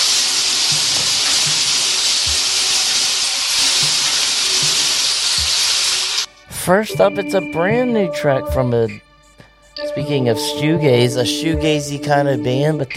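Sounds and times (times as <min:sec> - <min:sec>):
shuffle drum shuffling: 0:00.6 - 0:05.9
speech: 0:06.7 - 0:09.0, 0:10.0 - 0:12.9.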